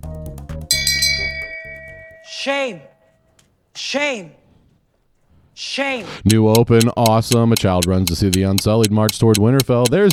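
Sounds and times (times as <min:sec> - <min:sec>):
bell ringing: 0:00.7 - 0:03.1
speech: 0:02.4 - 0:02.9, 0:03.8 - 0:04.4, 0:05.6 - 0:10.1.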